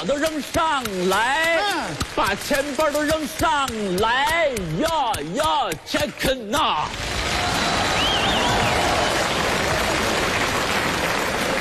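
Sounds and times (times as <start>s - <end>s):
speech: 0.0s - 7.5s
large audience applauding: 6.9s - 11.5s
whistle or cheer: 7.3s - 9.5s.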